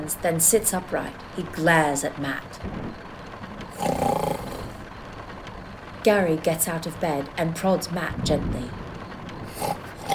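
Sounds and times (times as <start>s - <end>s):
speech: 0.1s - 3.1s, 6.0s - 8.8s
man snoring: 3.8s - 4.8s, 9.5s - 10.1s.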